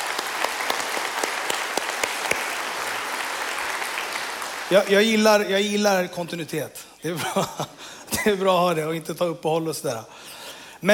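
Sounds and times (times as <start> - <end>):
audience applause: 0.0 - 5.3
speech: 4.7 - 10.9.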